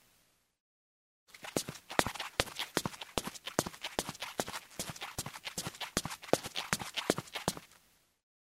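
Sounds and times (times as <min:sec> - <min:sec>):
footsteps in shoes on a wooden ladder: 0:01.4 - 0:07.7.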